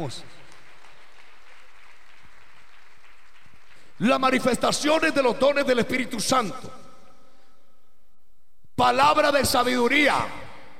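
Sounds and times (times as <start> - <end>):
speech: 0.0 - 0.4, 4.0 - 6.8, 8.8 - 10.4
audience clapping: 0.0 - 4.3.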